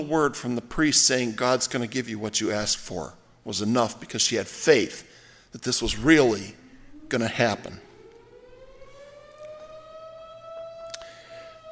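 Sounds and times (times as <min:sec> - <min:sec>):
speech: 0:00.0 - 0:07.9
emergency siren wailing: 0:05.7 - 0:11.7.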